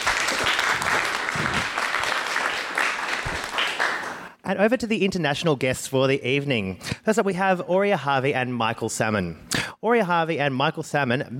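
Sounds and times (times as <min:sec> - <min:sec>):
sustained audience applause: 0:00.0 - 0:04.3
speech: 0:04.5 - 0:11.3.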